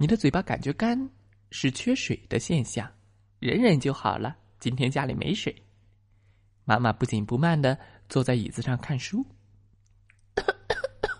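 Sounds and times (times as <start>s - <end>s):
speech: 0.0s - 5.6s, 6.7s - 9.4s, 10.4s - 10.6s
child coughing: 10.4s - 11.1s.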